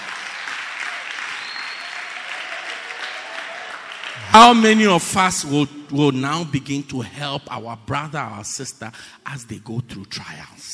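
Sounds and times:
audience clapping hands: 0:00.0 - 0:04.9
speech: 0:04.2 - 0:10.7.

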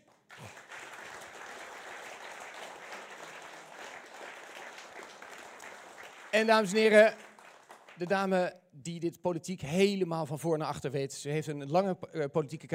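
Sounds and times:
audience applause: 0:00.0 - 0:08.2
speech: 0:06.3 - 0:07.2, 0:08.0 - 0:12.7.

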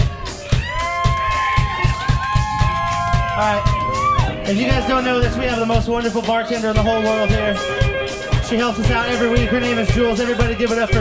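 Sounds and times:
audience applause: 0:00.0 - 0:04.5
audience cheering: 0:00.0 - 0:05.8
speech: 0:04.5 - 0:11.0.

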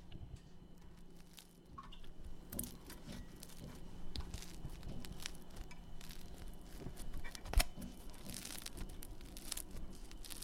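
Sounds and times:
crusty cooked bread crackling and crunching: 0:00.7 - 0:10.4.

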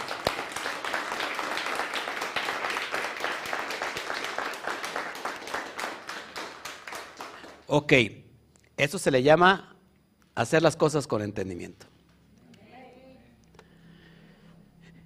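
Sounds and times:
audience applause: 0:00.0 - 0:07.7
speech: 0:07.7 - 0:08.2, 0:08.8 - 0:09.7, 0:10.4 - 0:11.8.

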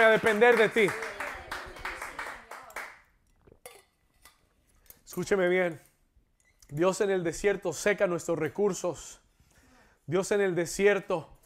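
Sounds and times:
speech: 0:00.0 - 0:01.1, 0:05.2 - 0:05.9, 0:06.7 - 0:09.2, 0:10.1 - 0:11.3
audience applause: 0:00.0 - 0:03.0.

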